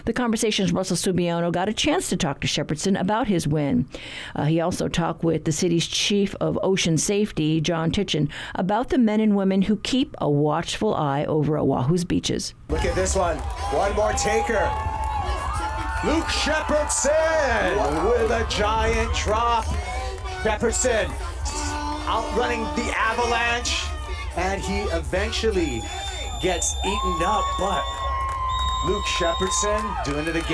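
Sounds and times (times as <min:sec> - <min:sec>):
speech: 0:00.0 - 0:14.9, 0:16.0 - 0:28.0, 0:28.8 - 0:30.5
excited male commentary on a surfer riding a massive wave: 0:12.7 - 0:15.0, 0:15.9 - 0:30.5
spectators cheering at the Eddie Aikau Big Wave Invitational: 0:12.7 - 0:30.5.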